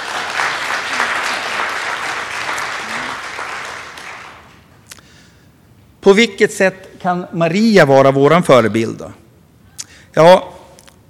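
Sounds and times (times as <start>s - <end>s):
audience applause: 0.0s - 4.6s
speech: 6.0s - 9.2s, 10.1s - 10.5s.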